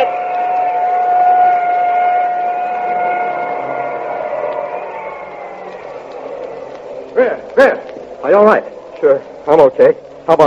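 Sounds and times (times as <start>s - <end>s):
ambulance siren passing: 0.0s - 7.2s
rushing vehicle noise: 0.0s - 10.3s
speech: 7.6s - 10.4s.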